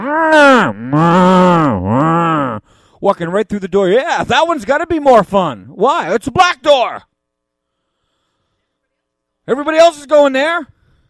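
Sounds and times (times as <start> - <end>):
cattle mooing: 0.0 - 2.7
speech: 0.1 - 1.8, 3.0 - 7.1, 9.5 - 10.8.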